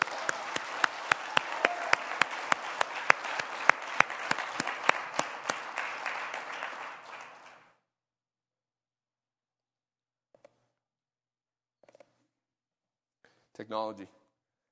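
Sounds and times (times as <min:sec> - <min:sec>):
audience applause: 0:00.0 - 0:07.7
speech: 0:13.6 - 0:14.2.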